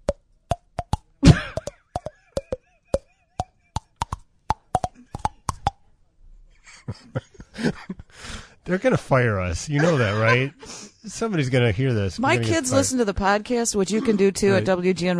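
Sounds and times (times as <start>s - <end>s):
thumbnail tapping against teeth tracing a melody: 0.0s - 5.8s
laughter: 6.8s - 8.2s, 9.6s - 10.6s, 12.2s - 12.9s, 13.9s - 14.7s
speech: 8.7s - 15.1s.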